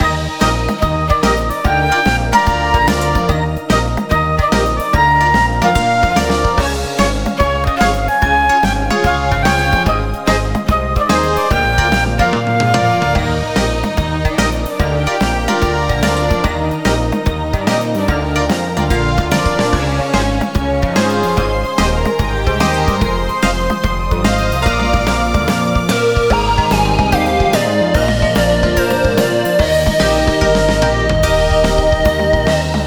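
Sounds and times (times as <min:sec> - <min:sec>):
happy soundtrack loop: 0:00.0 - 0:32.8.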